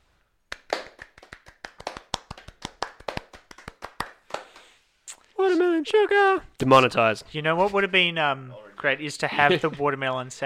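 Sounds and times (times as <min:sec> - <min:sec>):
hands clapping: 0:00.5 - 0:05.2
speech: 0:05.8 - 0:10.4.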